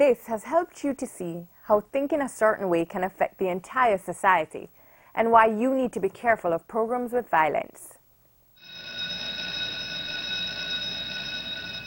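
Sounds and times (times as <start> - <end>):
speech: 0.0 - 8.0
bell jingle: 8.6 - 11.8.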